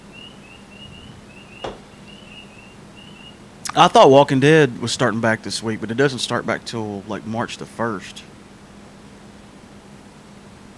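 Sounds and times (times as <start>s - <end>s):
frogs croaking: 0.0s - 8.3s
speech: 3.8s - 8.4s.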